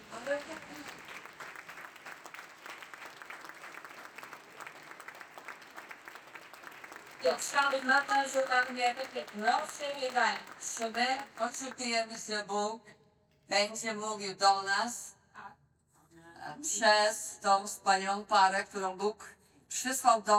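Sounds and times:
church congregation applauding: 0.0 - 12.2
church congregation voices cheering and calling out: 5.7 - 11.6
speech: 7.2 - 15.1, 16.6 - 20.3.

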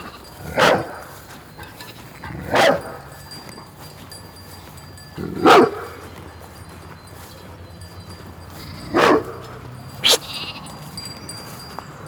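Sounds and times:
dog barking: 0.4 - 3.2, 5.2 - 6.2, 8.8 - 10.3.

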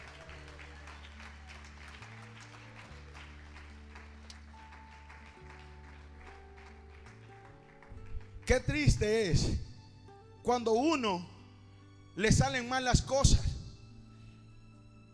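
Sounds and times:
audience applauding: 0.0 - 8.6
speech: 8.5 - 9.6, 10.4 - 11.3, 12.2 - 13.4.

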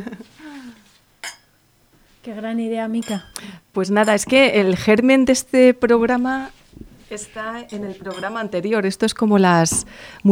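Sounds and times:
glasses clinking in a toast: 0.2 - 2.4, 3.0 - 4.9, 6.5 - 10.0
speech: 2.2 - 10.2.

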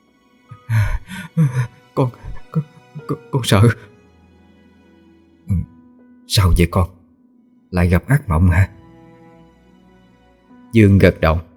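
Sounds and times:
young man panting heavily after a nightmare: 0.5 - 3.0
speech: 1.4 - 3.9, 6.4 - 7.0, 7.7 - 8.8, 10.7 - 11.5.

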